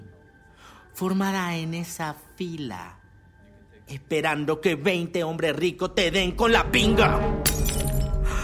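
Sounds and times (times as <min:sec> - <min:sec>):
speech: 0:01.0 - 0:03.0, 0:03.9 - 0:07.5
glass wine goblet breaking in a woman's hand: 0:07.4 - 0:08.2.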